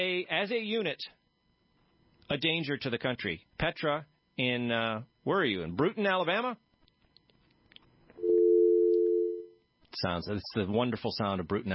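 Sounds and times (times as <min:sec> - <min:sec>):
speech: 0:00.0 - 0:01.2, 0:02.3 - 0:06.6, 0:10.0 - 0:11.7
landline telephone dial tone: 0:08.2 - 0:09.5.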